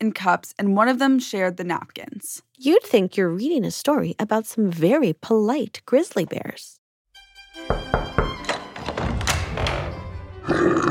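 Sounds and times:
speech: 0.0s - 6.8s
hollow knocks on a door: 7.7s - 10.0s.

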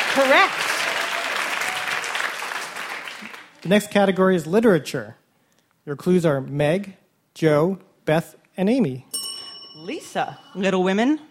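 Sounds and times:
crowd applause: 0.0s - 3.8s
speech: 0.2s - 0.7s, 3.6s - 5.2s, 5.8s - 9.1s, 9.8s - 11.2s.

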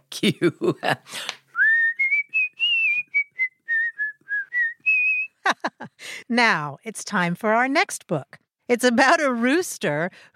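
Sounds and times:
speech: 0.2s - 1.4s, 6.3s - 10.3s
person whistling: 1.6s - 5.4s
laughter: 5.4s - 6.0s.

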